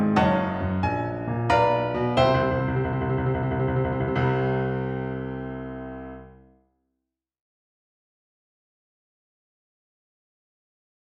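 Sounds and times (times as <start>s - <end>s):
boogie music playback: 0.0s - 6.3s.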